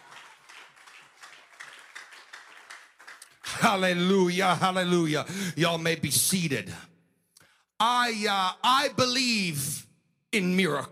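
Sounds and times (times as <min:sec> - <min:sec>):
audience clapping hands: 0:00.0 - 0:04.2
speech: 0:03.6 - 0:06.9, 0:07.8 - 0:10.9.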